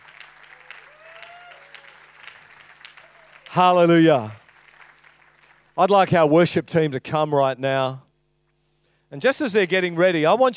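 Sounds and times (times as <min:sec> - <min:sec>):
crowd clapping: 0:00.0 - 0:06.2, 0:09.6 - 0:10.0
voices whooping and cheering: 0:00.5 - 0:02.3, 0:03.0 - 0:03.5
speech: 0:03.6 - 0:04.4, 0:05.8 - 0:08.0, 0:09.1 - 0:10.5.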